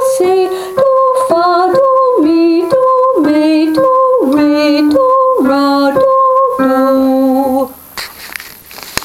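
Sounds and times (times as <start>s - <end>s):
person singing a chromatic scale to solfege syllables: 0.0s - 7.9s.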